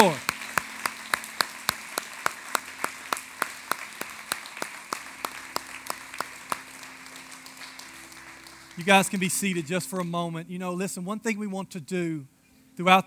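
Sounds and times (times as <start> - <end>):
speech: 0.0 - 0.3, 8.8 - 13.0
audience clapping in rhythm: 0.0 - 10.4.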